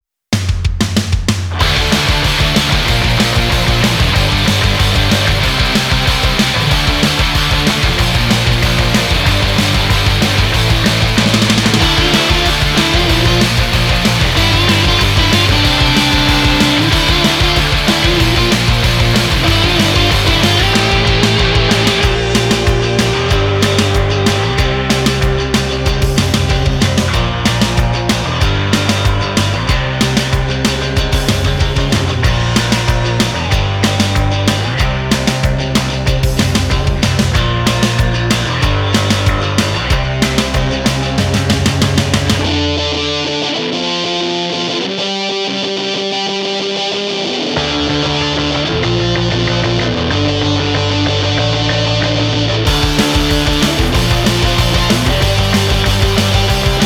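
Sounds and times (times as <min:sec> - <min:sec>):
noise rock music: 0:00.3 - 0:56.8.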